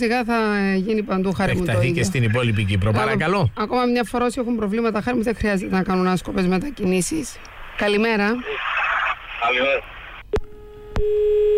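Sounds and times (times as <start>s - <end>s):
speech: 0.0s - 8.7s, 9.4s - 11.5s
telephone tone after a caller hung up: 10.3s - 11.5s.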